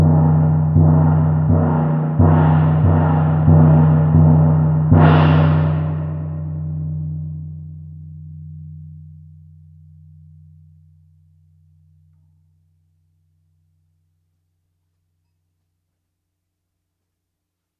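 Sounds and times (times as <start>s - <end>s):
gong: 0.0s - 12.6s.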